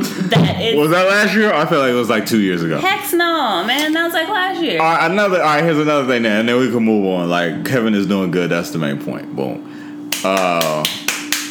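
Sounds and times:
speech: 0.3s - 11.0s
feeble soft hand claps: 10.1s - 11.4s.

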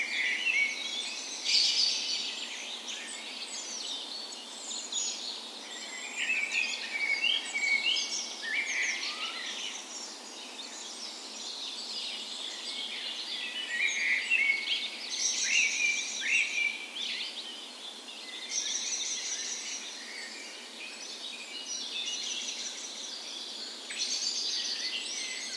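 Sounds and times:
dawn chorus of birds: 0.0s - 25.5s.

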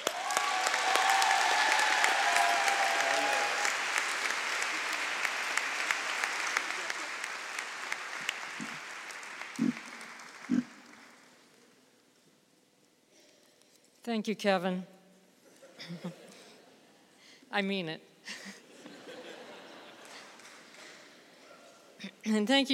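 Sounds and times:
audience applause: 0.0s - 11.5s
laughter: 6.2s - 7.5s, 18.3s - 20.8s
speech: 14.1s - 14.9s, 15.9s - 16.2s, 17.5s - 18.6s, 22.3s - 22.7s.

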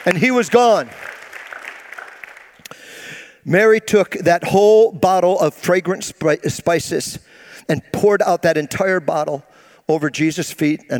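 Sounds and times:
speech: 0.0s - 1.1s, 3.4s - 10.9s
applause: 0.0s - 2.9s.

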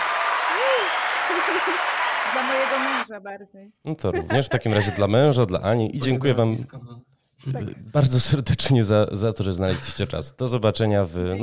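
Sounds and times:
applause: 0.0s - 3.1s
laughter: 0.6s - 3.0s, 3.9s - 5.2s
speech: 0.6s - 11.4s.

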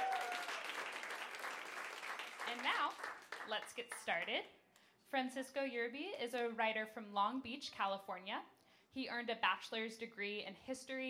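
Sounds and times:
audience applause: 0.0s - 3.5s
speech: 2.5s - 11.0s.

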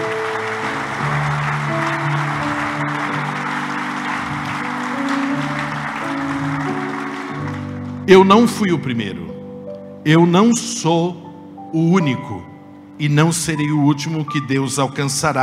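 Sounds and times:
audience applauding: 0.0s - 8.6s
speech: 8.1s - 9.3s, 10.0s - 15.4s.

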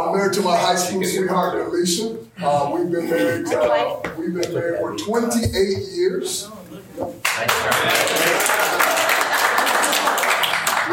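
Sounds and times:
speech: 0.1s - 8.8s
audience applause: 7.2s - 10.9s.

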